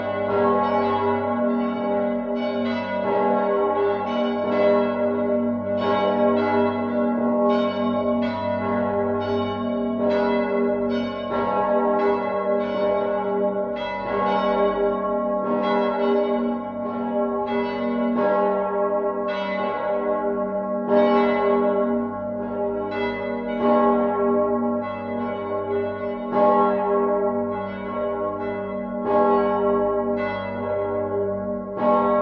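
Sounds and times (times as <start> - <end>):
cathedral bells partial peal on G sharp: 0.0 - 32.2.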